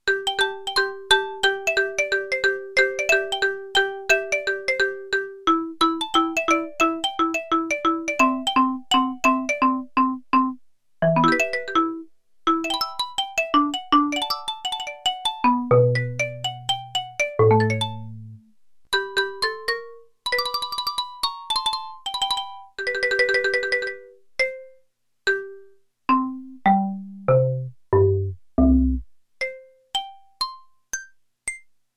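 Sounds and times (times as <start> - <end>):
xylophone: 0.1 - 18.4, 19.0 - 31.7.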